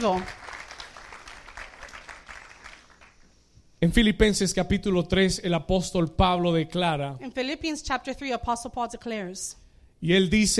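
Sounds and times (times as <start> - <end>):
speech: 0.0 - 0.4, 3.8 - 10.5
loud sustained audience applause: 0.0 - 3.3.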